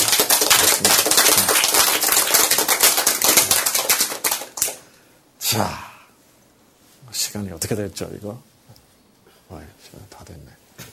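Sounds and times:
audience applause: 0:00.0 - 0:04.8
speech: 0:05.5 - 0:05.9, 0:07.3 - 0:08.8, 0:09.5 - 0:10.6.

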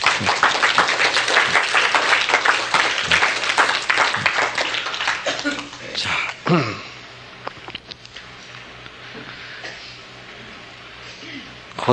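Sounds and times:
audience applause: 0:00.0 - 0:06.1
speech: 0:06.5 - 0:06.8.

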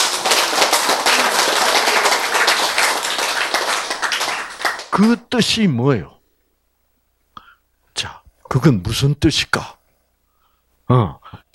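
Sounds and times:
audience clapping: 0:00.0 - 0:05.3
speech: 0:05.0 - 0:06.2, 0:08.0 - 0:09.8, 0:10.9 - 0:11.4.

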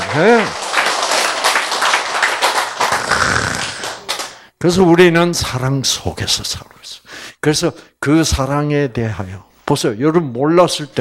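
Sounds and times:
audience applause: 0:00.0 - 0:04.4
speech: 0:00.1 - 0:00.6, 0:04.6 - 0:10.9.

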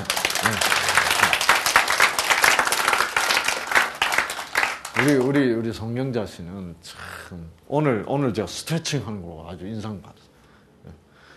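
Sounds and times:
speech: 0:00.0 - 0:00.7, 0:05.0 - 0:11.0
audience applause: 0:00.0 - 0:05.4.

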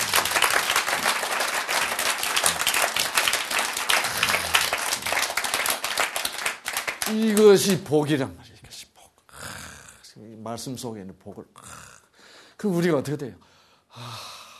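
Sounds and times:
audience clapping: 0:00.0 - 0:07.9
speech: 0:07.1 - 0:08.4, 0:10.4 - 0:11.7, 0:12.6 - 0:14.2.

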